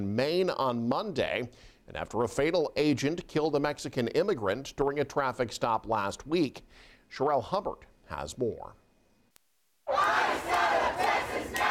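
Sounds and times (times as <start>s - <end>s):
speech: 0.0s - 8.8s
protest crowd shouting: 9.9s - 11.6s.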